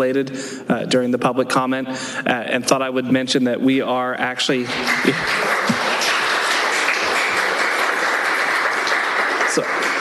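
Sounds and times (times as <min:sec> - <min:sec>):
speech: 0:00.0 - 0:05.5, 0:09.6 - 0:09.8
audience applause at council meeting: 0:04.6 - 0:10.0.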